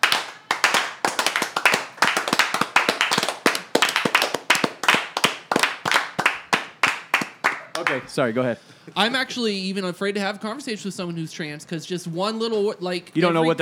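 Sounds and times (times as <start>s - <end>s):
hand claps: 0.0s - 8.1s
speech: 7.8s - 13.6s.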